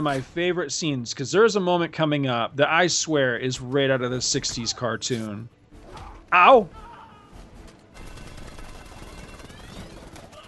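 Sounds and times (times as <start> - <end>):
speech: 0.0 - 5.6, 6.3 - 6.8
rapid gunfire in a film scene: 7.9 - 10.4.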